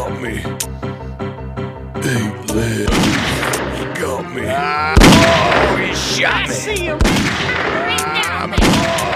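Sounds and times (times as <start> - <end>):
speech: 0.1 - 0.8, 2.0 - 3.4, 4.0 - 9.1
gunshots in the video game Grizzly Gulch: 2.8 - 3.9, 5.0 - 6.1, 7.0 - 9.1.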